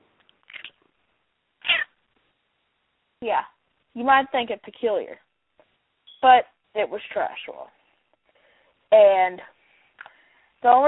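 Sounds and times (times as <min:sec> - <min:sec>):
cat meowing: 0:01.6 - 0:02.0
speech: 0:03.2 - 0:05.2, 0:06.2 - 0:07.8, 0:08.9 - 0:09.6, 0:10.6 - 0:10.8.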